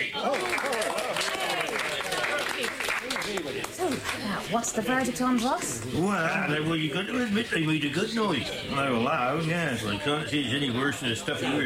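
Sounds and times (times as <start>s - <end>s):
audience applause: 0.0s - 4.4s
speech: 4.5s - 11.6s.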